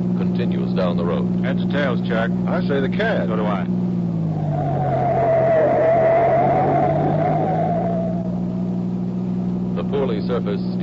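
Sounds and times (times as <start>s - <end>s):
speeding sedan roaring while swerving onto gravel road: 0.0s - 10.8s
speech: 0.4s - 3.8s, 10.1s - 10.8s.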